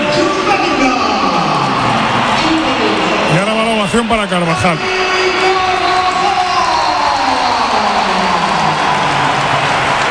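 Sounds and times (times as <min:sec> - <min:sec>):
large crowd applause: 0:00.2 - 0:10.0
speech: 0:04.0 - 0:05.5.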